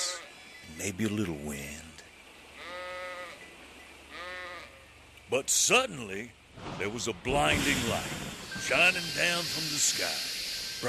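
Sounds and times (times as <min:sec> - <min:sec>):
sheep bleating: 0:00.0 - 0:00.3, 0:02.6 - 0:03.4, 0:04.1 - 0:04.9
speech: 0:00.8 - 0:01.9, 0:05.3 - 0:10.8.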